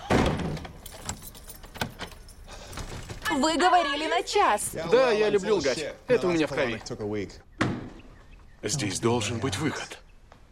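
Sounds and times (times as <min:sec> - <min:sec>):
room door thudding shut: 0:00.0 - 0:01.2, 0:07.6 - 0:08.0
metallic clicks and rattles of door being locked: 0:00.0 - 0:03.3
speech: 0:03.4 - 0:07.5, 0:08.6 - 0:10.0.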